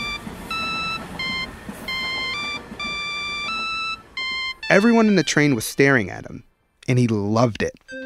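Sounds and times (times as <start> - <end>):
mobile phone ringtone electronic melody: 0.0 - 5.6
speech: 4.7 - 8.0.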